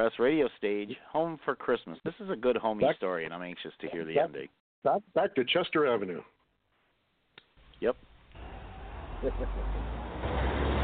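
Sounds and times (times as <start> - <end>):
speech: 0.0 - 6.4, 7.8 - 8.1, 9.2 - 10.4
bus driving off from the station in snow: 8.3 - 10.8.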